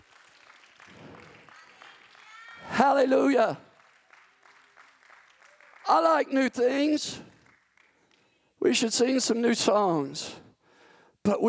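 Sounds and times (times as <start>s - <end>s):
audience clapping hands: 0.0s - 9.1s
speech: 2.8s - 3.6s, 6.0s - 7.3s, 8.6s - 10.4s, 11.2s - 11.4s.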